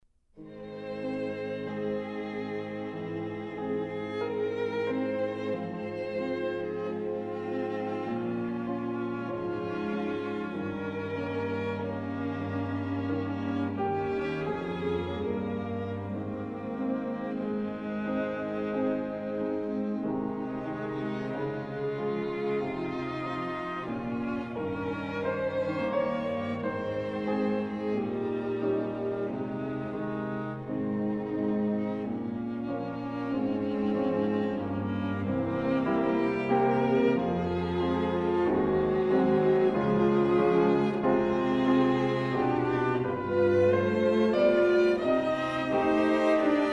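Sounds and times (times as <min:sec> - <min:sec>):
piano quartet: 0:00.4 - 0:46.7.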